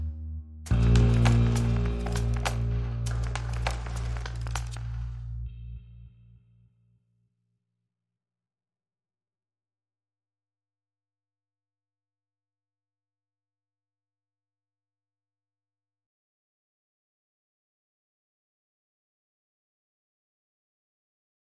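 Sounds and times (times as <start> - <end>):
bass: 0.0 - 7.1
drums: 0.7 - 5.2.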